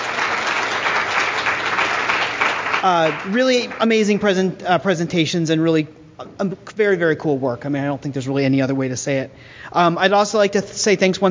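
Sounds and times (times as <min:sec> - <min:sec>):
audience applause: 0:00.0 - 0:03.9
speech: 0:02.8 - 0:11.2.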